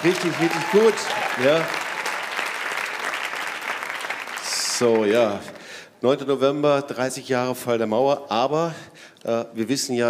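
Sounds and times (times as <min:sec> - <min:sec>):
speech: 0:00.0 - 0:01.8, 0:04.8 - 0:10.0
audience applause for the band: 0:00.0 - 0:05.7.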